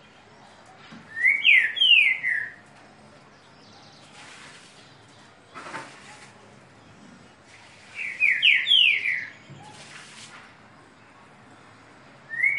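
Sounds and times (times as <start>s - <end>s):
green-winged saltator singing downslurred whistles: 1.1s - 2.6s, 8.0s - 9.5s, 12.3s - 12.5s.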